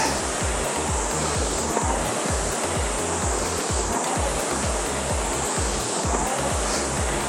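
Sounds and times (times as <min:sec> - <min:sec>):
low thudding pulses: 0:00.0 - 0:07.2
rowing machine seat rollers rumbling: 0:00.0 - 0:07.2
rushing air: 0:00.0 - 0:07.2.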